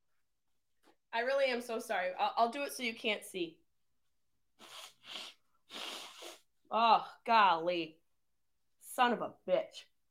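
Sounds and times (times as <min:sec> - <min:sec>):
speech: 0:01.2 - 0:03.6, 0:06.7 - 0:08.0, 0:09.0 - 0:09.9
person blowing nose: 0:04.6 - 0:06.6.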